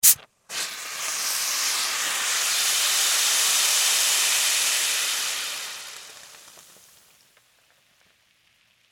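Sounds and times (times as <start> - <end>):
soda bottle opening: 0.0 - 1.9
soda spraying: 0.0 - 7.0.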